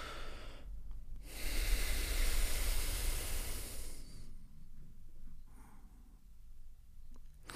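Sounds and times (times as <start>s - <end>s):
forceful exhale through both nostrils: 1.3s - 4.3s.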